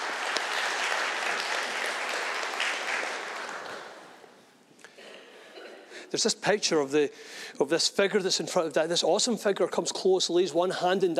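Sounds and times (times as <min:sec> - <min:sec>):
audience applause: 0:00.0 - 0:04.2
speech: 0:06.1 - 0:11.1.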